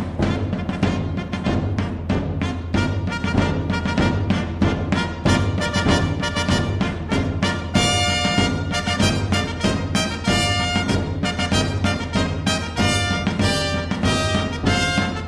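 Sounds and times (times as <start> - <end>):
fanfare for a cortege: 0.2 - 15.2.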